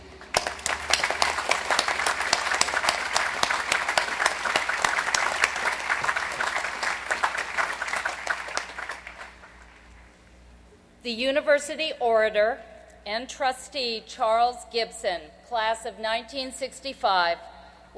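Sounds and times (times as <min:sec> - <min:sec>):
audience applause: 0:00.0 - 0:09.9
speech: 0:11.1 - 0:17.9.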